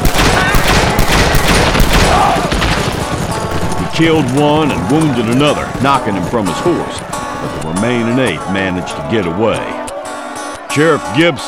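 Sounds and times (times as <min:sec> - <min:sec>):
gunshots fired in rapid succession: 0:00.0 - 0:04.0
speech: 0:04.0 - 0:09.8, 0:10.8 - 0:11.4.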